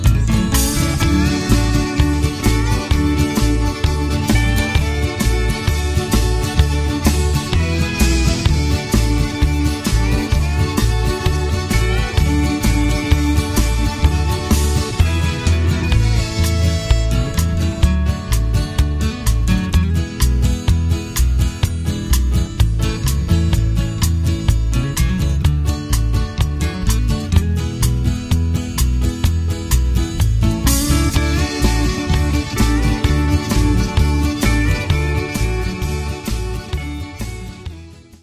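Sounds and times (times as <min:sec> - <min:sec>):
fiddle playing in an instrumental band piece: 0:00.0 - 0:19.8, 0:30.7 - 0:38.2
guitar playing in an instrumental band piece: 0:00.0 - 0:38.2.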